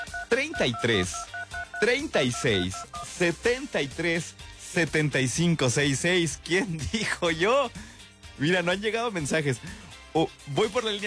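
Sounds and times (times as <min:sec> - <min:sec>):
telephone keypad dialing tones: 0:00.0 - 0:03.2
speech: 0:00.3 - 0:11.0.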